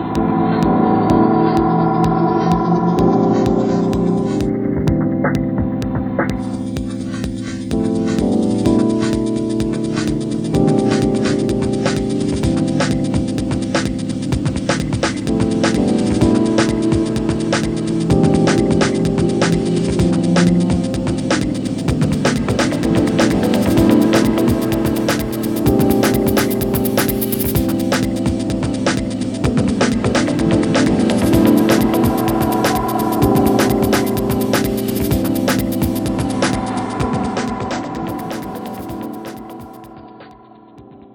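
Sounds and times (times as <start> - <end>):
ambient soundscape: 0.0 - 41.1.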